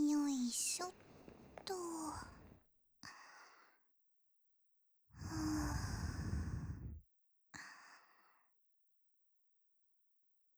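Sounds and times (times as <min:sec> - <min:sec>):
sleeping breathing on the left channel: 0:00.2 - 0:02.6, 0:05.2 - 0:07.0.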